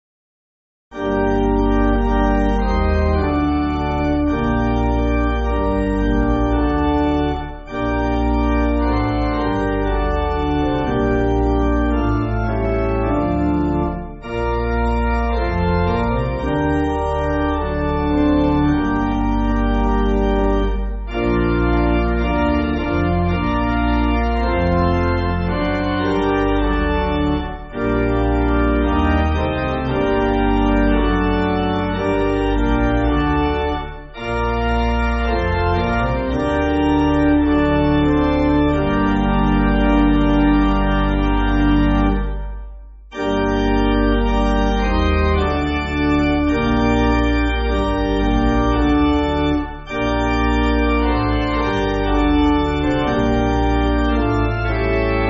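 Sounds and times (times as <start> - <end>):
pipe organ: 0.9 - 55.2.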